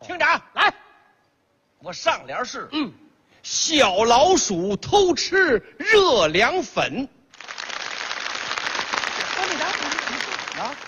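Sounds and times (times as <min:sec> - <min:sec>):
speech: 0:01.8 - 0:07.2
audience applause: 0:07.3 - 0:10.8.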